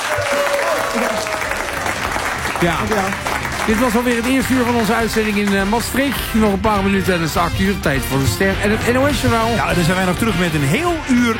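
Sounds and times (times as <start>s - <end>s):
large audience applauding a singer at a theatre event in Maastricht: 0.0s - 6.4s
speech: 2.6s - 11.3s.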